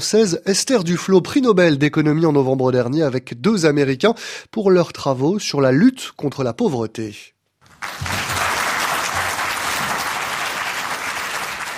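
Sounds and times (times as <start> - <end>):
speech: 0.0 - 8.2
sustained applause in a small hall at the Massachusetts Institute of Technology: 7.7 - 11.7.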